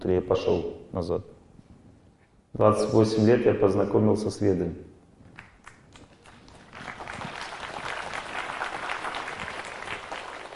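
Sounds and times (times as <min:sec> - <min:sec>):
speech: 0:00.0 - 0:01.4, 0:02.5 - 0:04.9
audience applause: 0:05.9 - 0:10.5.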